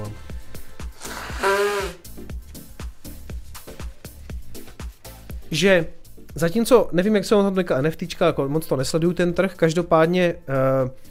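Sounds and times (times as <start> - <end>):
steady rhythmic beat: 0.2 - 6.4
nose blowing: 0.8 - 2.3
speech: 5.5 - 11.0.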